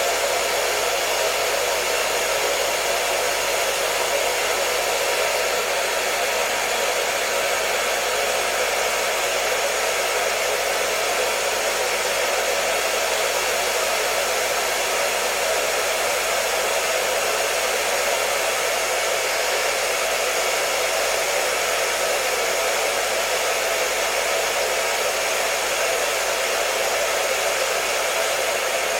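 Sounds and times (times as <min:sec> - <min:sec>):
hair dryer blowing: 0:00.0 - 0:28.9.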